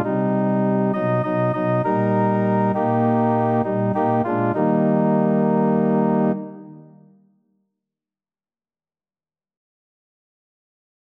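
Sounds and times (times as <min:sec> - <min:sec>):
organ: 0:00.0 - 0:06.7.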